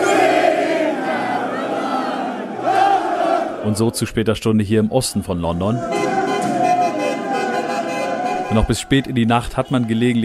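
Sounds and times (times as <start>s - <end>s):
football crowd cheering at Wembley Stadium: 0.0s - 3.8s, 5.4s - 10.2s
speech: 3.6s - 6.2s, 8.5s - 10.2s.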